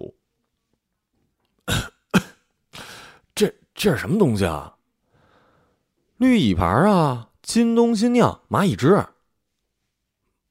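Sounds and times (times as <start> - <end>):
person coughing after choking on drink: 1.6 - 3.0
speech: 3.4 - 4.8, 6.2 - 9.1.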